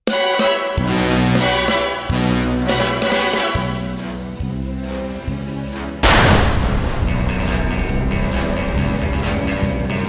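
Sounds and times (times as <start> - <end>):
brassy orchestral music with punchy stabbing chords: 0.1 - 10.0
loud gunshot burst: 6.0 - 8.5.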